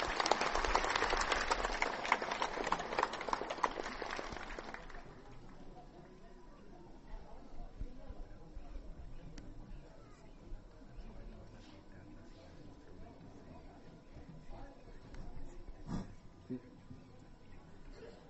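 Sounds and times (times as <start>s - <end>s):
audience applause: 0.0s - 5.3s
quiet murmur: 0.0s - 18.2s.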